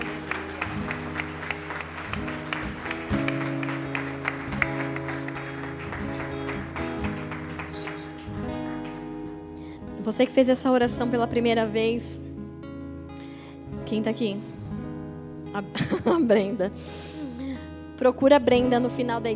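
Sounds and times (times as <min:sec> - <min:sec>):
crowd applause: 0:00.0 - 0:09.7
sustained musical chords: 0:00.0 - 0:13.2
speech: 0:10.1 - 0:12.2, 0:13.9 - 0:14.5, 0:15.6 - 0:17.1, 0:18.0 - 0:19.3
laughter: 0:15.8 - 0:16.4.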